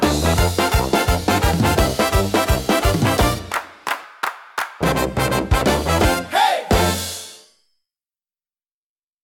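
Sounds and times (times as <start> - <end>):
upbeat carnival brass parade music: 0.0 - 4.0, 4.7 - 7.5.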